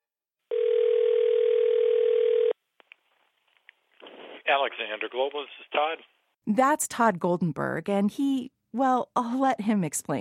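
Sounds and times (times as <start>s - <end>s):
telephone tone on the line: 0.5s - 2.6s
speech: 4.5s - 10.1s.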